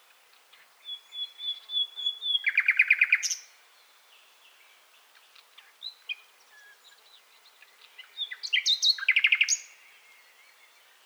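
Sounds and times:
common nightingale Luscinia megarhynchos song: 0:00.6 - 0:04.8, 0:05.6 - 0:11.0.

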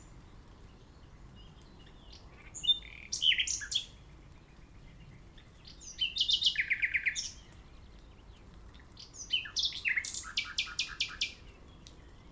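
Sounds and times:
common nightingale singing: 0:00.0 - 0:08.4, 0:09.0 - 0:12.3.

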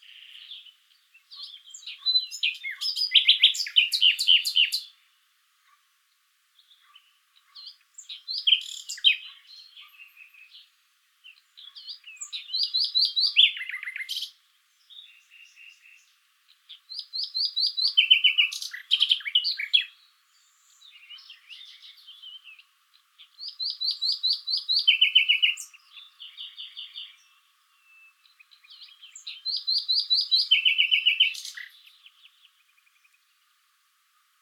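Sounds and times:
common nightingale singing: 0:00.0 - 0:05.1, 0:06.6 - 0:33.6.

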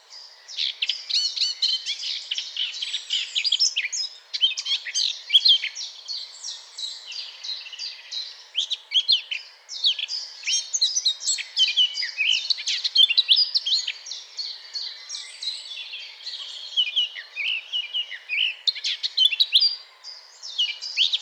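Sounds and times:
Eurasian blackcap warbling song: 0:00.1 - 0:21.2.

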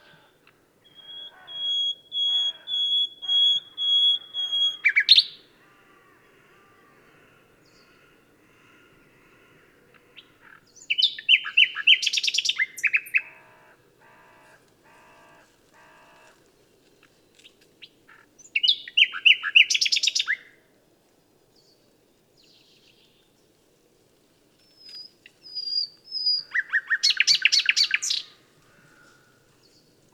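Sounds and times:
common nightingale singing: 0:00.1 - 0:05.5, 0:10.2 - 0:13.3, 0:17.4 - 0:20.5, 0:24.6 - 0:28.4.

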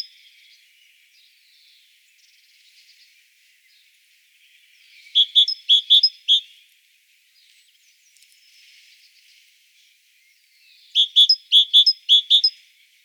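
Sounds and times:
great tit calling: 0:05.0 - 0:06.4, 0:10.9 - 0:12.5.

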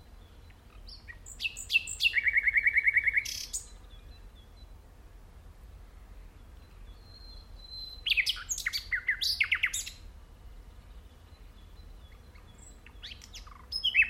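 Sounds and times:
common nightingale song: 0:00.0 - 0:04.9, 0:05.8 - 0:14.0.

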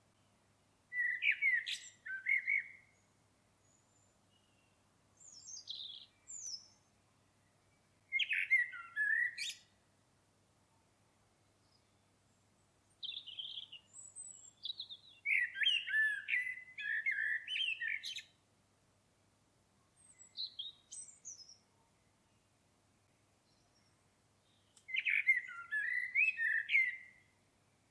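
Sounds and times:
common blackbird singing: 0:00.9 - 0:03.0, 0:03.6 - 0:06.9, 0:08.1 - 0:09.7, 0:12.9 - 0:18.4, 0:20.0 - 0:21.6, 0:23.4 - 0:27.3.

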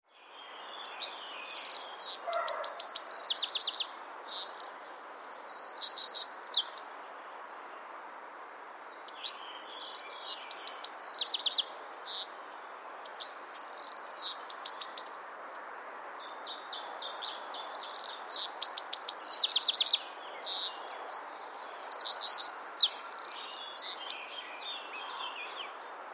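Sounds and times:
background hiss: 0:00.1 - 0:26.1
Eurasian wren singing chattering notes and trills: 0:00.8 - 0:06.9, 0:09.1 - 0:15.2, 0:15.8 - 0:26.1.

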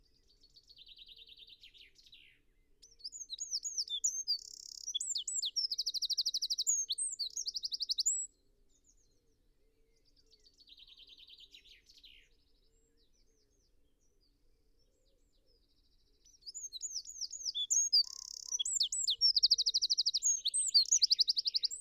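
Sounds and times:
Eurasian wren singing: 0:03.0 - 0:08.3, 0:16.5 - 0:21.7.

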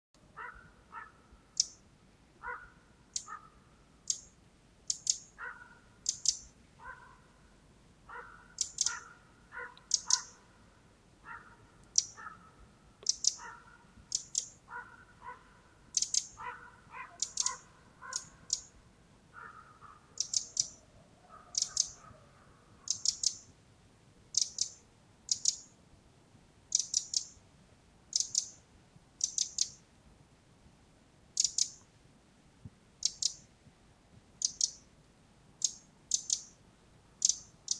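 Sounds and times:
background hiss: 0:00.2 - 0:37.7
Eurasian wren ticking calls: 0:00.4 - 0:01.8, 0:02.4 - 0:07.0, 0:08.1 - 0:10.6, 0:11.3 - 0:12.4, 0:13.0 - 0:18.8, 0:19.4 - 0:23.6, 0:24.3 - 0:25.8, 0:26.7 - 0:27.4, 0:28.1 - 0:28.6, 0:29.2 - 0:29.8, 0:31.4 - 0:31.9, 0:33.0 - 0:33.5, 0:34.4 - 0:34.9, 0:35.6 - 0:36.6, 0:37.2 - 0:37.7.

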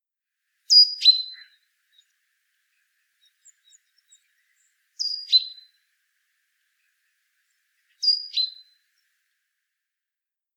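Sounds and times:
great tit calls: 0:00.7 - 0:02.2, 0:02.8 - 0:05.8, 0:06.8 - 0:09.1.

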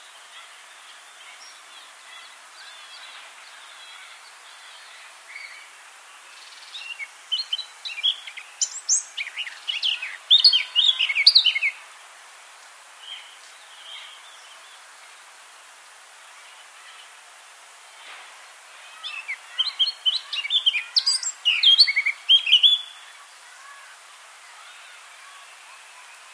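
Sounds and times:
soft steady background hiss: 0:00.0 - 0:26.3
Eurasian blackcap singing: 0:01.2 - 0:11.8, 0:18.9 - 0:23.2.

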